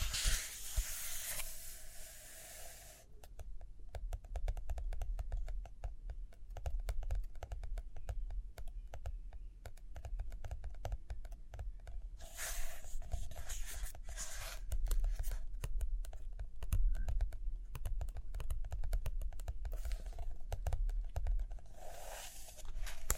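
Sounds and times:
paper rustling from pages turning: 0.0 - 2.1, 22.0 - 23.1
fingers tapping: 3.1 - 12.1, 14.7 - 21.7
writing or drawing ticks and taps: 3.1 - 23.1.

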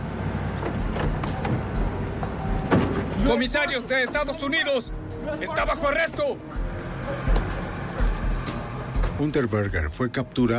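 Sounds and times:
car engine rumbling: 0.0 - 9.4
speech: 3.3 - 7.3, 9.2 - 10.5.

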